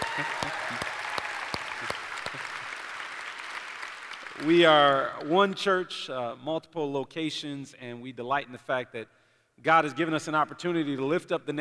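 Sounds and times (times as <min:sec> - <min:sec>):
audience applause: 0:00.0 - 0:05.3
speech: 0:04.4 - 0:11.6.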